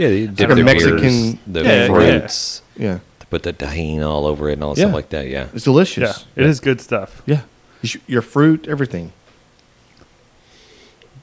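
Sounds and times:
speech: 0.0s - 9.2s
person sniffing: 10.4s - 11.0s.

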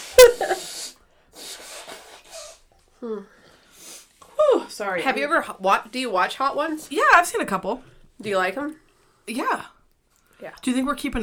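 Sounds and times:
nose blowing: 0.0s - 2.6s
speech: 3.0s - 3.4s, 4.8s - 9.7s, 10.4s - 11.2s.

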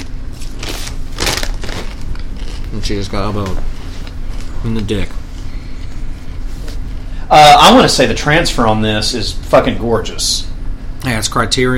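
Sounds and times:
chip bag crinkling: 0.0s - 5.1s
low steady hum: 0.0s - 11.7s
speech: 2.7s - 3.7s, 4.6s - 5.2s, 7.3s - 11.7s.

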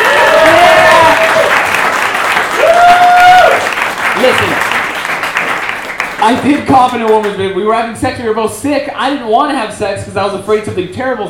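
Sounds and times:
audience applause: 0.0s - 7.0s
speech: 6.2s - 11.2s.

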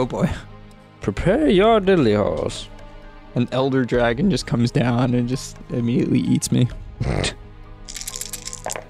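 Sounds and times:
speech: 0.0s - 2.7s, 3.4s - 7.4s
dice rattling across a hard surface: 7.9s - 8.8s.

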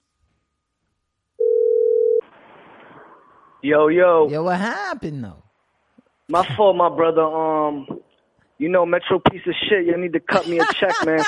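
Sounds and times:
telephone dial tone while redialing: 1.4s - 2.2s
speech: 3.6s - 5.4s, 6.3s - 8.0s, 8.6s - 11.2s
laughter: 10.3s - 11.2s.

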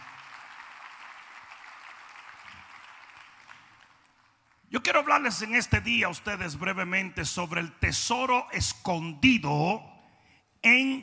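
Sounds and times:
audience applause: 0.0s - 4.3s
speech: 4.8s - 9.9s, 10.6s - 11.0s.

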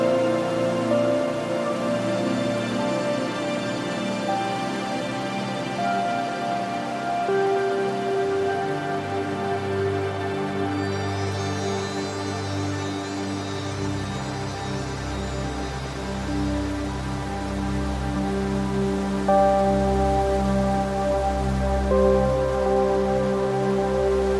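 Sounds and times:
soft sustained relaxing music tones: 0.0s - 24.3s
wind in trees hiss: 0.0s - 24.3s.

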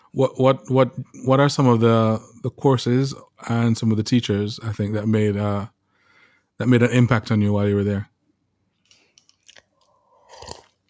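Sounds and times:
speech: 0.1s - 5.8s, 6.6s - 8.1s
person sipping water: 8.9s - 10.8s.

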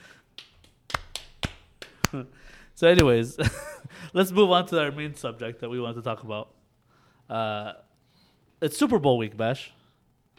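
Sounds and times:
hand clapping: 0.0s - 3.7s
speech: 2.1s - 6.6s, 7.3s - 7.9s, 8.6s - 9.8s.

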